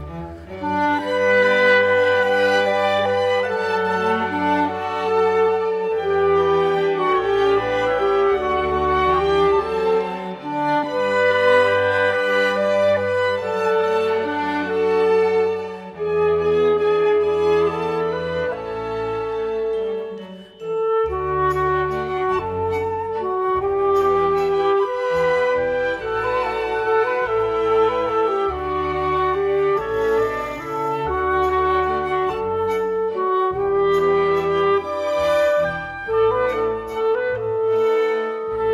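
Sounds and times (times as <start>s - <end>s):
clarinet playing: 0.0s - 38.7s.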